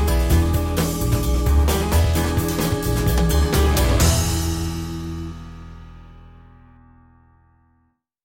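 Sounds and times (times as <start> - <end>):
lifestyle TV light comedy music: 0.0 - 5.8.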